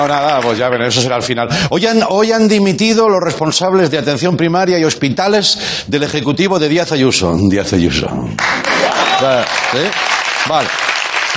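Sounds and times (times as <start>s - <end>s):
speech: 0.0s - 11.3s
crowd applause: 8.4s - 11.3s
voices shouting and cheering: 8.6s - 9.9s.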